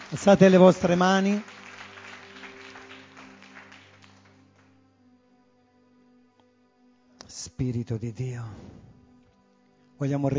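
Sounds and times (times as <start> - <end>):
audience applause: 0.0 - 4.7
speech: 0.1 - 1.5, 7.6 - 9.0, 10.0 - 10.3.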